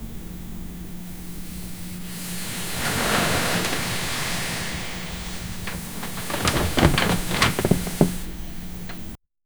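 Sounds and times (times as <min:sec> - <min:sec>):
person on a sofa: 0:01.6 - 0:09.2.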